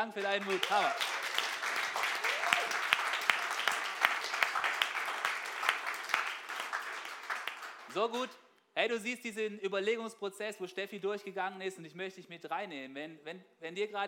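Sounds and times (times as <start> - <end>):
speech: 0.0 - 1.2, 7.9 - 14.0
audience applause: 0.0 - 8.0.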